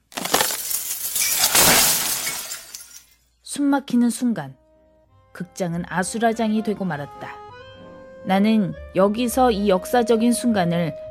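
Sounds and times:
chandelier crashing: 0:00.0 - 0:03.1
glass shattering: 0:00.0 - 0:03.2
speech: 0:03.6 - 0:04.6, 0:05.4 - 0:07.4, 0:08.2 - 0:11.0.

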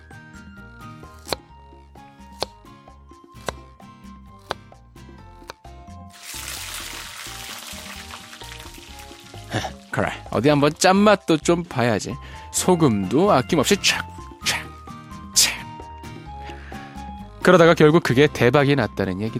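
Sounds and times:
knife slicing potatoes thin: 0:01.0 - 0:01.5, 0:02.2 - 0:02.7, 0:03.3 - 0:03.7, 0:04.4 - 0:04.7, 0:05.4 - 0:05.6
speech: 0:09.6 - 0:14.1, 0:17.5 - 0:19.3.

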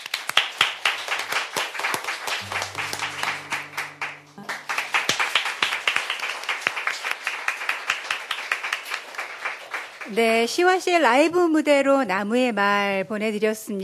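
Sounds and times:
audience clapping: 0:00.0 - 0:10.5
low sustained tone: 0:02.4 - 0:05.5
speech: 0:10.1 - 0:13.8.

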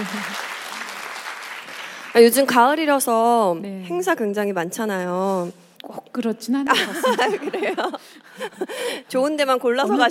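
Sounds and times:
laughter: 0:00.0 - 0:00.4, 0:06.7 - 0:09.0
audience applause: 0:00.0 - 0:02.2
speech: 0:02.2 - 0:10.0.

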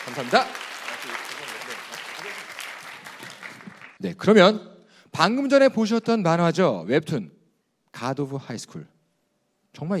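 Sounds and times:
speech: 0:00.0 - 0:02.6, 0:04.0 - 0:07.4, 0:08.0 - 0:08.9, 0:09.8 - 0:09.9
audience applause: 0:00.0 - 0:04.0.

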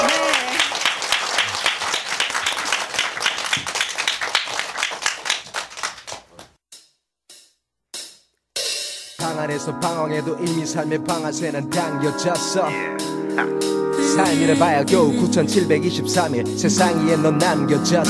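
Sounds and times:
audience applause: 0:00.0 - 0:06.4
speech: 0:09.4 - 0:18.0.

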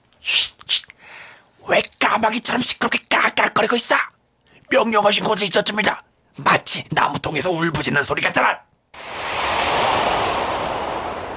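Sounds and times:
speech: 0:01.8 - 0:09.1
wind blowing: 0:09.0 - 0:11.3.

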